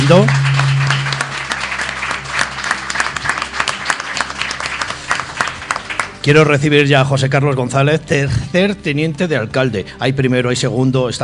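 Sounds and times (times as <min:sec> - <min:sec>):
audience applause: 0:00.0 - 0:06.2
speech: 0:00.1 - 0:00.4, 0:06.3 - 0:11.2.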